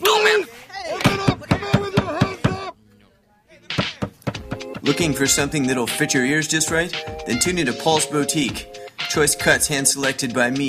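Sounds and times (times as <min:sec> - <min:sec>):
pounding on a door: 0:01.0 - 0:02.7, 0:03.8 - 0:04.9
speech: 0:04.9 - 0:10.6.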